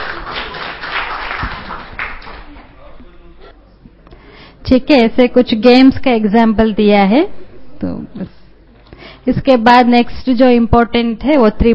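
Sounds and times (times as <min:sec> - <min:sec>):
applause: 0:00.0 - 0:02.8
speech: 0:04.7 - 0:08.4, 0:09.2 - 0:11.7.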